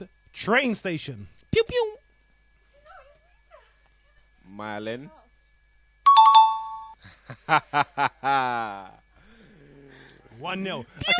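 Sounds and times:
speech: 0.0 - 1.9, 4.5 - 5.2, 7.3 - 9.0, 10.4 - 11.1
quiz celebration chime sound effect: 6.1 - 7.0
person laughing: 7.1 - 8.9.

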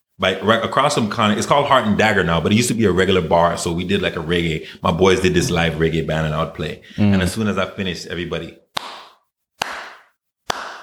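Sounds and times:
speech: 0.2 - 8.6
slow half-hearted clapping: 8.8 - 10.8.

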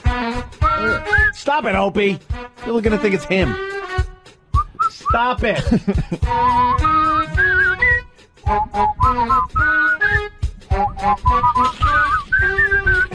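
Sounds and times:
man whistling a lively melody along to a song: 0.6 - 1.4, 4.5 - 5.2, 6.2 - 13.1
speech: 0.8 - 4.1, 5.1 - 7.1, 8.5 - 9.9, 11.0 - 12.7
laughter: 5.5 - 6.5.

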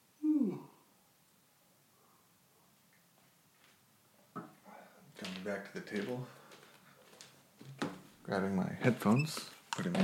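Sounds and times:
person yawning: 0.2 - 0.8
speech: 5.4 - 6.4, 8.3 - 10.0.

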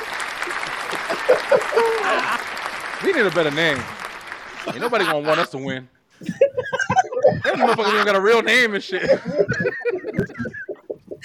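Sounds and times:
hand clapping: 0.0 - 5.8, 9.0 - 11.2
laughter: 0.0 - 11.2
speech: 1.8 - 4.0, 4.6 - 6.4, 7.4 - 10.6.

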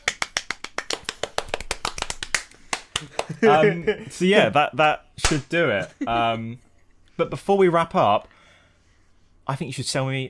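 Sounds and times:
hand clapping: 0.0 - 3.5
laughter: 3.0 - 4.2
speech: 3.0 - 6.6, 7.2 - 8.3, 9.5 - 10.2.

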